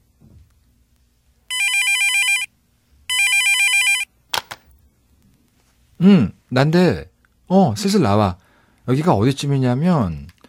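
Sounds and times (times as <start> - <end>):
phone ringing with a call from a boyfriend: 1.5 - 2.5, 3.1 - 4.1
speech: 6.0 - 10.4.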